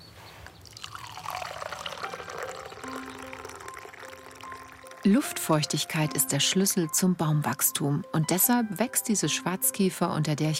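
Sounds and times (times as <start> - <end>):
tea poured into a cup: 0.5 - 6.4
speech: 5.0 - 10.5.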